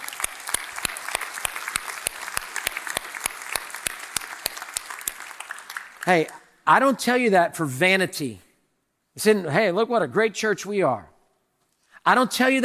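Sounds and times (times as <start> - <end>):
audience cheering and applause: 0.0 - 6.3
steady beat of sharp claps: 0.0 - 6.5
speech: 6.0 - 8.4, 9.2 - 11.1, 12.0 - 12.6.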